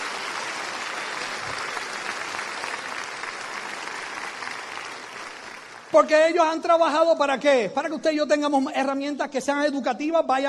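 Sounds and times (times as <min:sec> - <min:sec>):
audience applause: 0:00.0 - 0:06.1
speech: 0:05.9 - 0:10.4.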